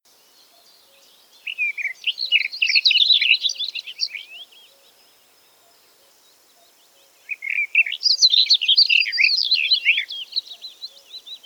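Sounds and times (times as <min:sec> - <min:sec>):
garden warbler song: 0:00.1 - 0:11.4.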